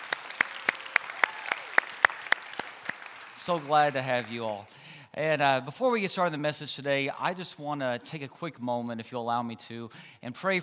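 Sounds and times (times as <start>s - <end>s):
hands clapping at a church service: 0.0s - 4.8s
speech: 3.4s - 10.6s.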